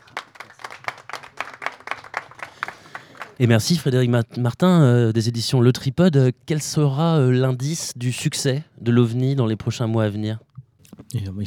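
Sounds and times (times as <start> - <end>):
small audience group clapping: 0.0 - 3.6
speech: 3.4 - 10.5, 11.1 - 11.4.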